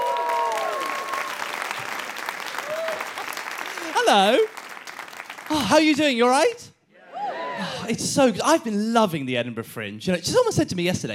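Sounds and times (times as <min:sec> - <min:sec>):
audience applause welcoming a comedian at the Edinburgh Fringe: 0:00.0 - 0:06.1
speech: 0:04.1 - 0:04.6, 0:05.5 - 0:06.7, 0:07.6 - 0:11.1.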